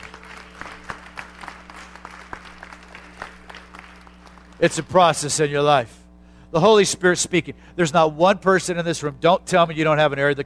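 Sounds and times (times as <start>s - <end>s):
audience hand clapping: 0.0s - 5.2s
speech: 4.6s - 10.4s.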